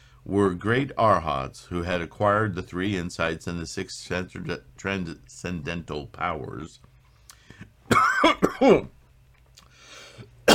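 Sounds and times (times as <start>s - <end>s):
speech: 0.2s - 6.9s, 8.0s - 9.0s
person coughing after choking on their own saliva: 7.9s - 8.9s.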